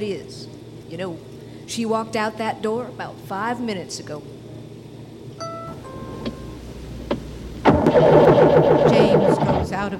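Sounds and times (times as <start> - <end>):
speech: 0.0 - 4.4, 9.8 - 9.9
minivan engine cranking, failing to start: 7.6 - 9.9.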